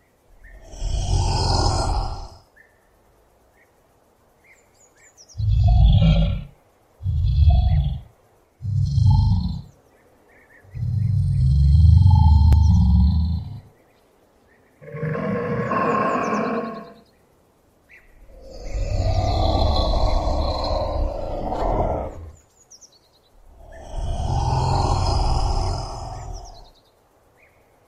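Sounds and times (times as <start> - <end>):
Komodo dragon: 0.3 - 2.4, 5.4 - 9.7, 10.6 - 13.7, 14.8 - 17.0, 18.2 - 22.4, 23.4 - 26.7.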